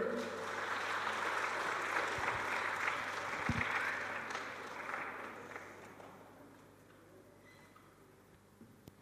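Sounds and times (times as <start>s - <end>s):
crowd applauding: 0.0s - 6.2s.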